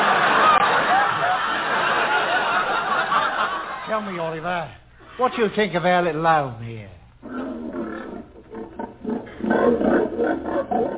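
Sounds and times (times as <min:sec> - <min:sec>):
laughter: 0:00.0 - 0:04.1
speech: 0:04.0 - 0:07.0
pigs grunting: 0:07.2 - 0:10.9.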